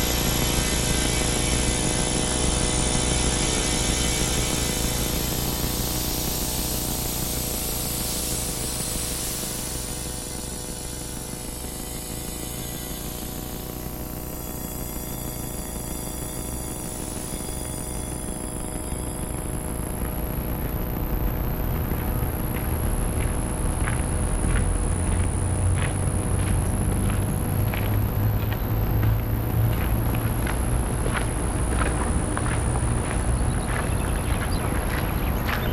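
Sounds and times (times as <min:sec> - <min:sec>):
dense nature soundscape hiss: 0:00.0 - 0:19.9
low hum: 0:00.0 - 0:35.7
rapid ticking pulses: 0:00.0 - 0:35.7
sustained synthesizer tones: 0:00.0 - 0:35.7.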